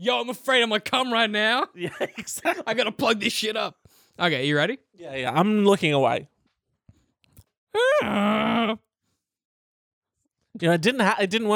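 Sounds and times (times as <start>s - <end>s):
speech: 0.0s - 6.3s, 7.7s - 8.8s, 10.6s - 11.5s
laughter: 1.6s - 3.3s
person moaning imitating a donkey: 7.8s - 8.8s.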